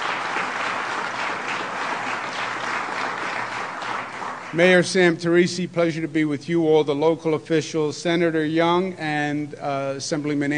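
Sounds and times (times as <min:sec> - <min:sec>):
audience applause: 0:00.0 - 0:04.6
speech: 0:04.5 - 0:10.5.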